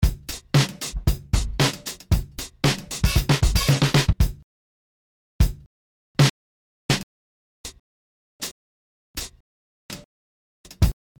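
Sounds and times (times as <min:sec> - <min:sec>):
drum kit loop: 0:00.0 - 0:04.4, 0:05.4 - 0:05.7, 0:10.7 - 0:10.9.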